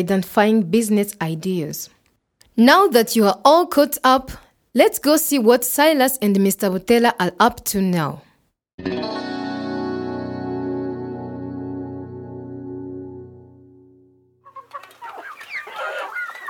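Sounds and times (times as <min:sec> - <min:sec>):
speech: 0:00.0 - 0:02.0, 0:02.6 - 0:09.2
sustained musical tone: 0:08.8 - 0:14.3
chickens clucking on a poultry farm: 0:14.4 - 0:16.4.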